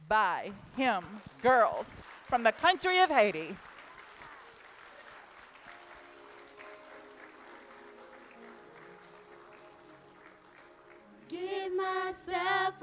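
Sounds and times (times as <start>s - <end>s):
speech: 0.1s - 4.3s, 11.3s - 12.8s
audience applause: 1.1s - 11.2s.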